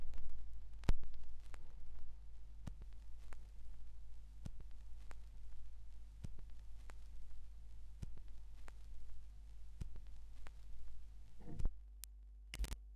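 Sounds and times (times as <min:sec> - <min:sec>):
vinyl record noise: 0:00.0 - 0:11.8, 0:12.6 - 0:12.8.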